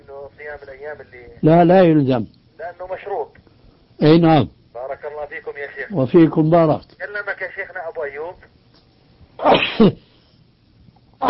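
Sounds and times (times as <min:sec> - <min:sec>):
speech: 0:00.3 - 0:03.4, 0:04.0 - 0:08.6, 0:09.4 - 0:10.1
sheikh sneezing: 0:09.4 - 0:10.1.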